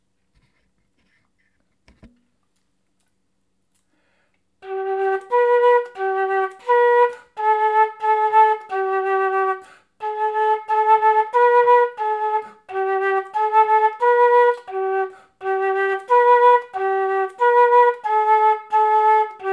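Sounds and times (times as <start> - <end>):
music: 4.6 - 19.5.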